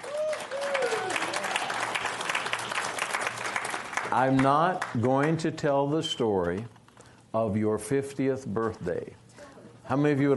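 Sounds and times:
audience applauding for a birthday: 0.0 - 5.4
speech: 4.1 - 9.2, 9.9 - 10.3.

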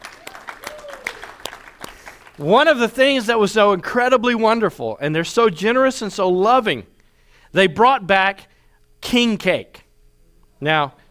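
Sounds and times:
audience clapping: 0.0 - 2.6
speech: 2.4 - 6.9, 7.5 - 9.8, 10.6 - 11.0.

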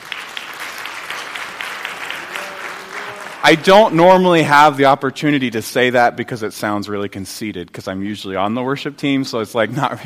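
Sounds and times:
round of applause for a worship team: 0.0 - 4.0
speech: 3.4 - 10.0.

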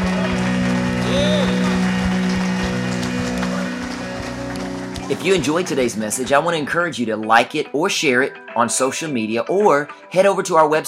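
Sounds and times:
rising vocal note: 0.0 - 5.8
audience hand clapping: 0.0 - 6.6
sustained organ-like tones: 0.0 - 7.0
speech: 5.1 - 10.8.

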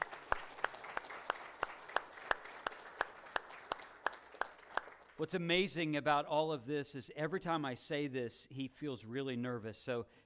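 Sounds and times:
round of applause: 0.0 - 5.2
speech: 5.2 - 10.2.

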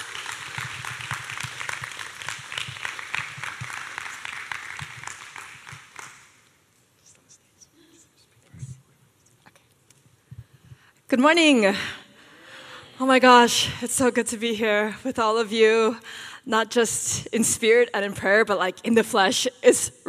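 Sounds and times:
audience clapping: 0.0 - 6.6
speech: 11.1 - 12.0, 13.0 - 20.0.

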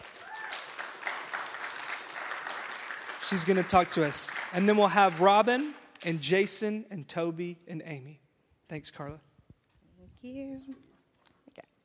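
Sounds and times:
many hands clapping at a third-anniversary community gathering: 0.0 - 6.6
speech: 3.3 - 9.3, 10.2 - 10.9.

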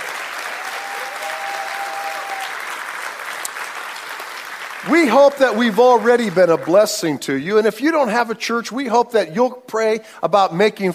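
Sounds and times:
church congregation at Florida Bible Church applauding guests: 0.0 - 7.4
speech: 4.8 - 10.9.

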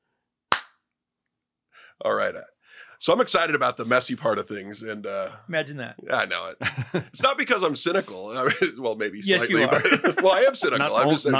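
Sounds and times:
single sharp hand clap: 0.5 - 0.8
speech: 1.9 - 11.3
laughter: 6.6 - 11.3.

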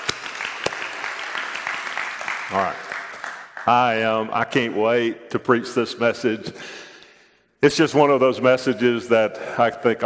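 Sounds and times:
crowd clapping: 0.0 - 4.1
speech: 2.5 - 2.9, 3.7 - 6.8, 7.6 - 10.0.

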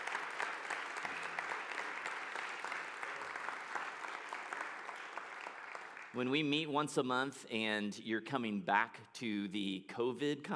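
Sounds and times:
crowd clapping: 0.0 - 6.4
speech: 6.2 - 10.5.

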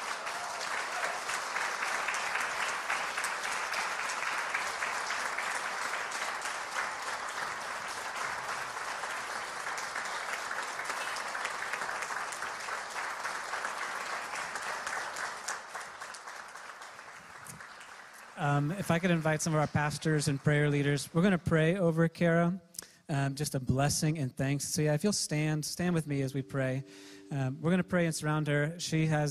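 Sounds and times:
crowd applauding: 0.0 - 21.7
speech: 18.4 - 29.2.

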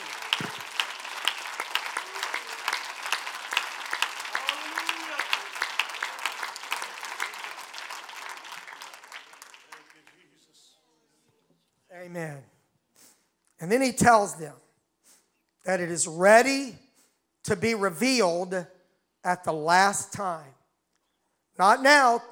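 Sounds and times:
audience applause: 0.0 - 10.6
speech: 13.6 - 14.6, 15.7 - 16.8, 17.4 - 20.6, 21.6 - 22.2.

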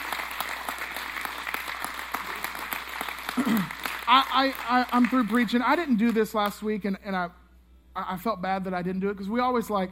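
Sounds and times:
audience applauding: 0.0 - 5.6
speech: 3.4 - 7.4, 8.0 - 9.9.

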